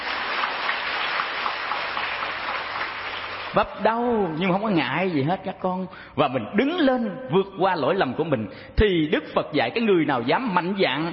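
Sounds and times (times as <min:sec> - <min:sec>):
audience applause at a Buddhist teaching: 0:00.0 - 0:03.6
speech: 0:03.6 - 0:11.1.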